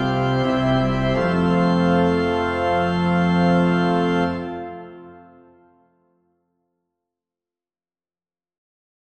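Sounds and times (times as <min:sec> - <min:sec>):
organ at St Flavian: 0:00.0 - 0:05.8.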